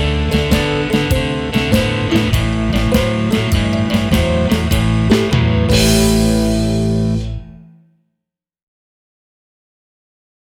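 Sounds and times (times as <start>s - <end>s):
blues music in A: 0.0s - 7.8s.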